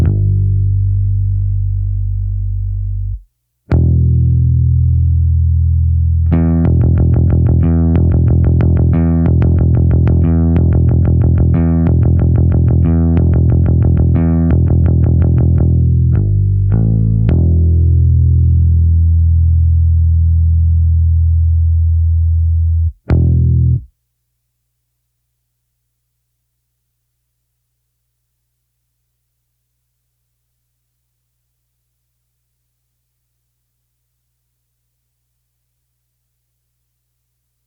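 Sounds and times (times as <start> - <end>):
bass: 0.0 - 23.9.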